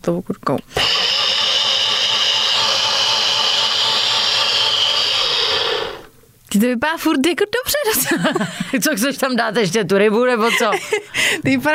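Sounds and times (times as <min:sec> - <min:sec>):
speech: 0:00.0 - 0:01.0, 0:06.6 - 0:11.7
blender whirring while churning a smoothie: 0:00.7 - 0:06.2.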